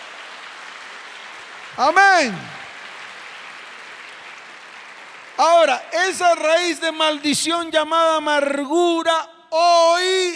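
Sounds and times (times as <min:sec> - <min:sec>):
audience applause: 0:00.0 - 0:06.6
speech: 0:01.8 - 0:02.6, 0:05.4 - 0:10.3.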